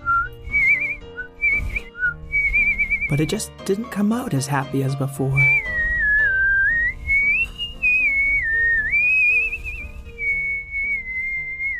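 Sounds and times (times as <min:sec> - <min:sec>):
person whistling a cheerful birdsong imitation: 0:00.0 - 0:03.3, 0:05.4 - 0:11.7
speech: 0:03.1 - 0:05.8.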